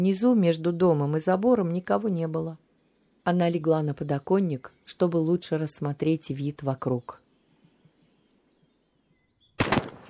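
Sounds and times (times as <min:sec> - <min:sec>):
speech: 0:00.0 - 0:02.6, 0:03.2 - 0:07.2
gunshot: 0:09.6 - 0:10.0.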